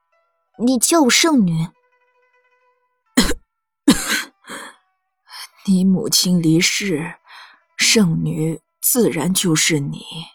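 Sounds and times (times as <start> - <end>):
speech: 0.6 - 1.8, 5.7 - 7.2, 7.8 - 10.3
woman coughing weakly from her sickbed: 3.2 - 4.7.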